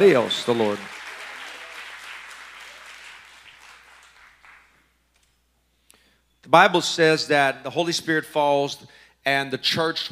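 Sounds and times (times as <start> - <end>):
speech: 0.0 - 1.0, 6.4 - 10.0
large crowd clapping in praise: 0.0 - 4.9.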